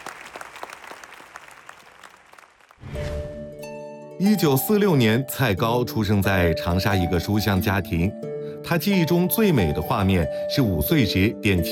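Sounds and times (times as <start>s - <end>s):
large audience applause: 0.0s - 2.8s
speech: 4.2s - 11.6s.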